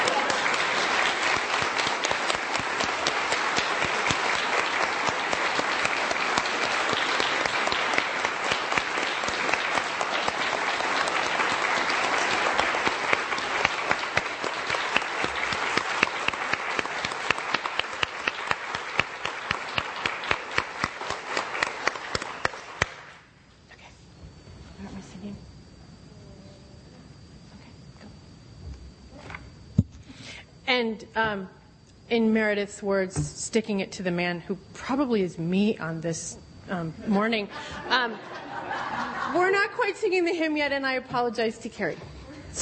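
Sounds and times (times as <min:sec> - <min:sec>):
laughter: 0:00.0 - 0:01.2, 0:37.4 - 0:39.6
audience applause: 0:00.0 - 0:23.1
speech: 0:30.9 - 0:31.6, 0:32.2 - 0:38.3, 0:39.9 - 0:42.6.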